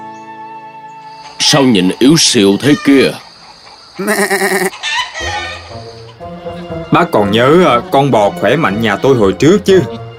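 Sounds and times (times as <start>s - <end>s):
speech: 1.4s - 3.3s, 4.0s - 5.9s, 7.0s - 10.0s
goat bleating at a market: 4.0s - 5.5s.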